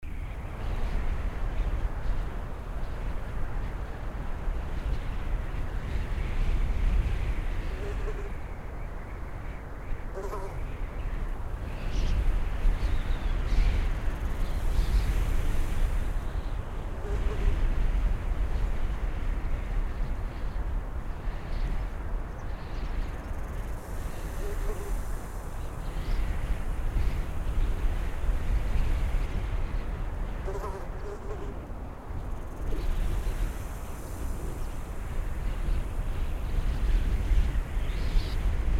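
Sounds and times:
daytime wind: 0:00.0 - 0:38.7.

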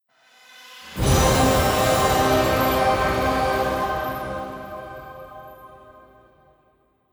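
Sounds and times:
music jingle: 0:01.0 - 0:06.3.

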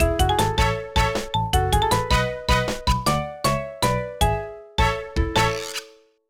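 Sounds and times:
winning music: 0:00.0 - 0:05.9.

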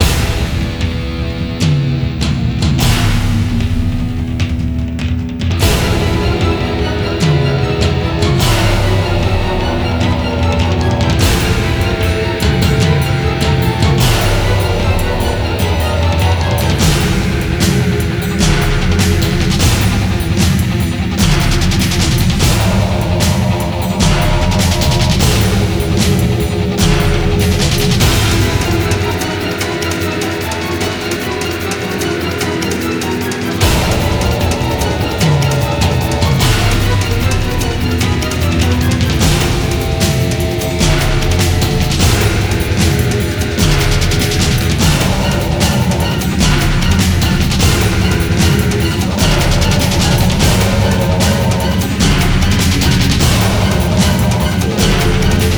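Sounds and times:
dark battle music loop: 0:00.0 - 0:55.5.

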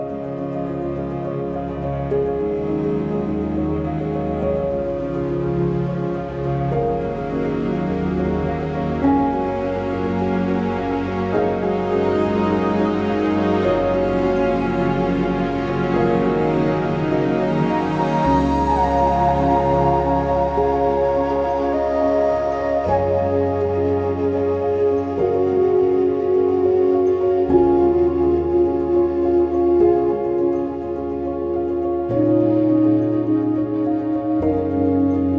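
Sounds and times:
tropical rain: 0:00.2 - 0:35.3.

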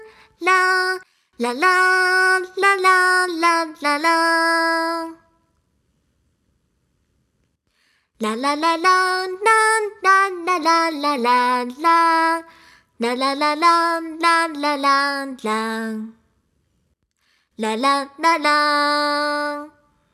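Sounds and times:
person singing: 0:00.0 - 0:05.3, 0:08.2 - 0:16.2, 0:17.6 - 0:19.8.

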